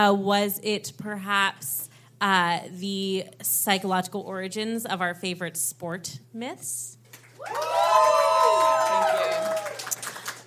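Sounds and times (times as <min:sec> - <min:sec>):
speech: 0:00.0 - 0:09.5
live audience cheering and shouting: 0:07.4 - 0:09.9.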